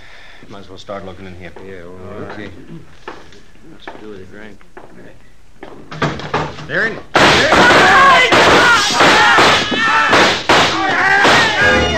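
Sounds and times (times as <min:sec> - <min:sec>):
speech: 0:00.4 - 0:10.1
gunfire shootout: 0:07.2 - 0:11.8.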